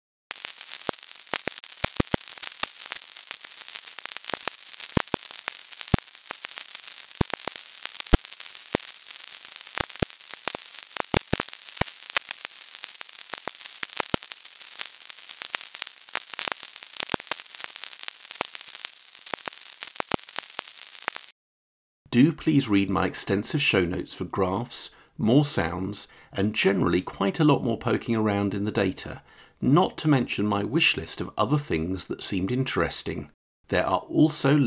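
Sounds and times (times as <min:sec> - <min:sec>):
sonified internet traffic rendered as sizzling static with crackles and pops: 0:00.3 - 0:21.4
speech: 0:22.2 - 0:34.6.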